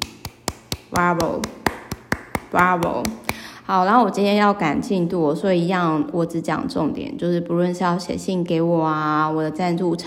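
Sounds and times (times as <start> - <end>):
hand clapping: 0.0 - 3.4
speech: 0.9 - 1.6, 2.5 - 10.0.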